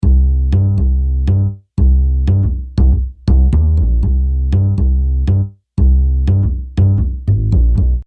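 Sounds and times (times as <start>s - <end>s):
bass: 0.0s - 8.0s.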